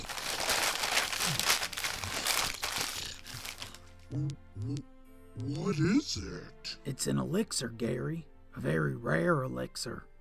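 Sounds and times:
wrapping paper crinkling and tearing as a present is unwrapped: 0:00.0 - 0:04.0
speech: 0:04.1 - 0:10.1.

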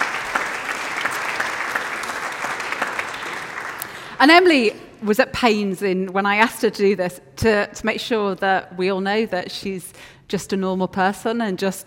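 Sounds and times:
audience applause: 0:00.0 - 0:04.2
speech: 0:04.2 - 0:11.8.

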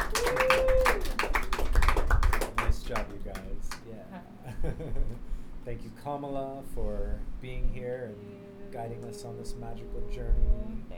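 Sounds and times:
audience round of applause: 0:00.0 - 0:03.8
speech: 0:05.1 - 0:10.9.

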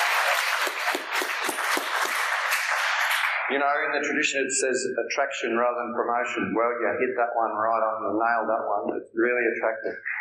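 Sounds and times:
audience applause: 0:00.0 - 0:03.5
speech: 0:00.4 - 0:01.2, 0:03.5 - 0:10.2.

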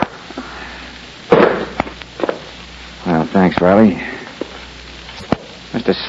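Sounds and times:
low steady hiss: 0:00.0 - 0:06.0
gunshots in a radio drama: 0:01.3 - 0:01.9
speech: 0:03.4 - 0:04.1, 0:05.8 - 0:06.0.

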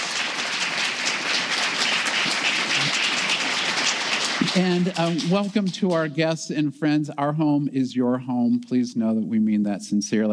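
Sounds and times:
crowd applauding: 0:00.0 - 0:06.4
speech: 0:04.6 - 0:10.3.

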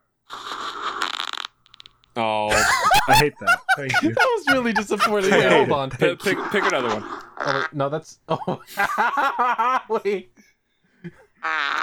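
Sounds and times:
recorded fart sound: 0:00.3 - 0:01.8
laughter: 0:02.5 - 0:10.3, 0:11.0 - 0:11.8
speech: 0:03.1 - 0:11.8.

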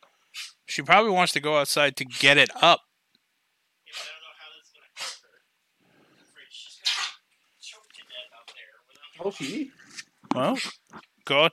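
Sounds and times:
speech: 0:00.8 - 0:02.9, 0:09.2 - 0:11.5
dog coughing: 0:03.9 - 0:04.2, 0:05.0 - 0:05.3, 0:06.8 - 0:07.3.

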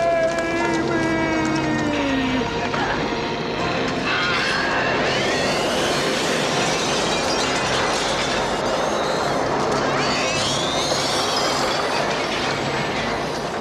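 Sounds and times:
film sound of burning, screaming skeleton: 0:00.0 - 0:13.5.

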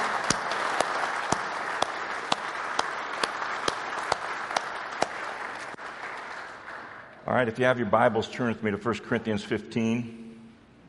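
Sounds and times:
audience applauding mothers and grandmothers: 0:00.0 - 0:07.2
speech: 0:07.3 - 0:10.2.

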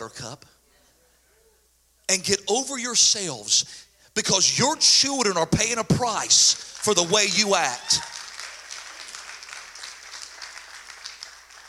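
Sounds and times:
speech: 0:00.1 - 0:00.6, 0:02.1 - 0:08.2
audience clapping: 0:06.0 - 0:11.6.

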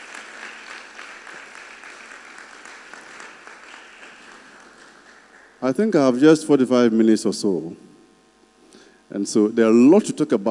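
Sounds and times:
crowd applauding: 0:00.0 - 0:06.0
speech: 0:05.6 - 0:07.9, 0:09.2 - 0:10.4.

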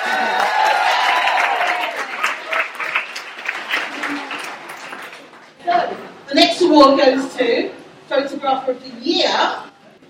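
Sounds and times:
crowd clapping at an awards ceremony: 0:00.0 - 0:05.6
speech: 0:06.7 - 0:09.6.

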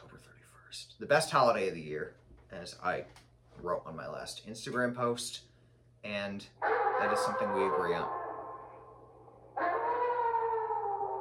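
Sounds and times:
speech: 0:00.8 - 0:08.2
werewolf howl sound effect: 0:06.6 - 0:11.1.

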